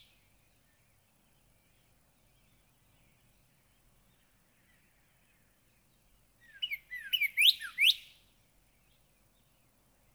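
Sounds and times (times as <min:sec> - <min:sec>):
Northern cardinal song of bright slurred whistled notes: 0:06.4 - 0:08.2.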